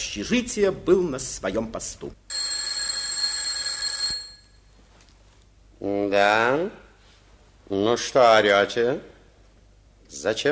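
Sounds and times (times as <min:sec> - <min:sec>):
speech: 0:00.0 - 0:02.2, 0:05.8 - 0:06.8, 0:07.7 - 0:09.1, 0:10.1 - 0:10.5
telephone ringing in a corridor: 0:02.3 - 0:04.7.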